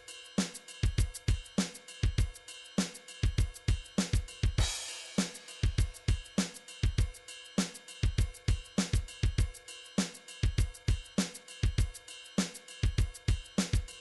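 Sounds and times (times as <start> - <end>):
pop rock MIDI drum patterns: 0.0 - 14.0.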